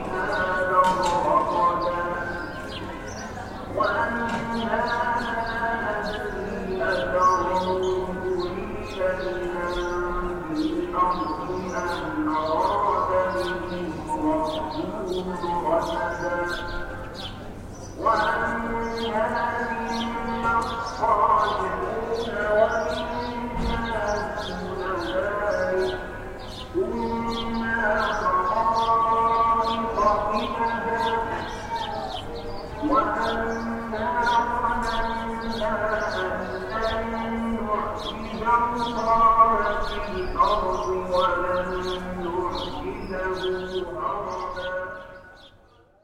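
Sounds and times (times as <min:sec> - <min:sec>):
call to prayer in Jerusalem: 0:00.0 - 0:46.0.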